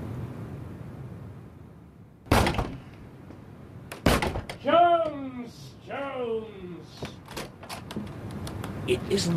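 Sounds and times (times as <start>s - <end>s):
door being shut: 2.3s - 2.8s, 3.9s - 4.6s
speech: 5.5s - 7.1s, 8.9s - 9.3s.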